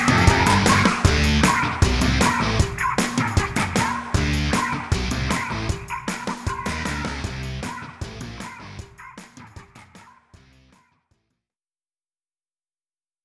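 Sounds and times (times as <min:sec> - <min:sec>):
battle victory results music: 0:00.0 - 0:08.8.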